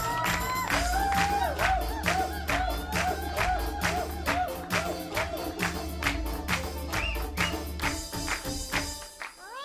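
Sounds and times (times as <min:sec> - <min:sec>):
whoops and cheering voices: 0:00.0 - 0:05.7
audience clapping in a steady rhythm: 0:00.0 - 0:09.5.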